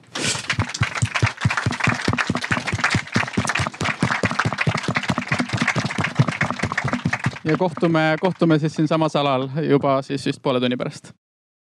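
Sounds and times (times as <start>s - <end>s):
audience applause: 0.1s - 8.6s
speech: 7.5s - 11.2s.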